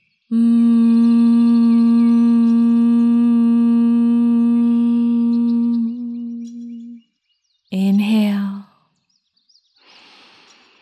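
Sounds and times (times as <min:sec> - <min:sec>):
speech: 0:00.3 - 0:00.7
bee breath nasal hum on an exhale: 0:00.3 - 0:07.0.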